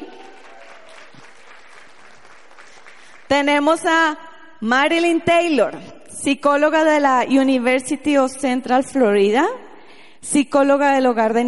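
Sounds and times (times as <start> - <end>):
audience applause: 0.0 - 3.3
speech: 3.3 - 9.6, 10.2 - 11.4.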